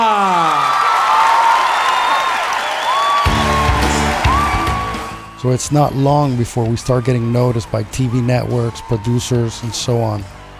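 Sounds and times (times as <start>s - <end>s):
applause for a band: 0.0s - 5.3s, 7.3s - 10.5s
crowd in Miami cheering and whooping for a band: 0.0s - 10.5s
crowd whistles: 1.6s - 5.5s
band music: 3.2s - 6.6s
speech: 5.4s - 10.4s.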